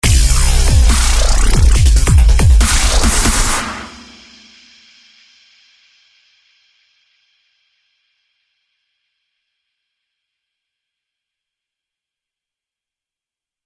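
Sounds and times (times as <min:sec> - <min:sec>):
bass wubs: 0:00.0 - 0:03.8.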